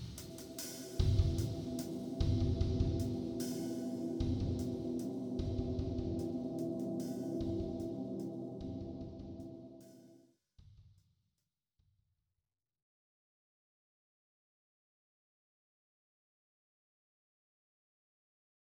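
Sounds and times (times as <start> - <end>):
creepy sound: 0.2 - 9.8.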